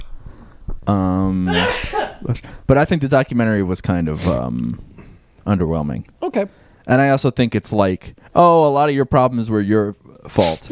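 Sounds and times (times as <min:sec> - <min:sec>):
low noise: 0:00.0 - 0:10.6
speech: 0:00.9 - 0:10.6
person with allergies sneezing: 0:01.5 - 0:02.2, 0:10.4 - 0:10.6.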